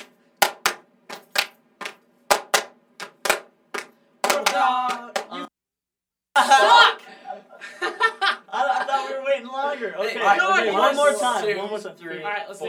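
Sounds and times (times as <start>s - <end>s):
rhythmic hand clapping: 0.0s - 5.4s
laughter: 6.4s - 9.3s
speech: 9.8s - 12.6s.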